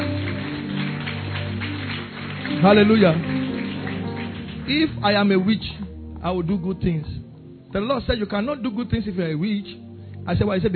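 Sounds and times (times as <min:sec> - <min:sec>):
crowd clapping: 0:00.0 - 0:05.8
sustained low musical tones: 0:00.0 - 0:10.7
speech: 0:02.6 - 0:03.4, 0:04.7 - 0:10.7.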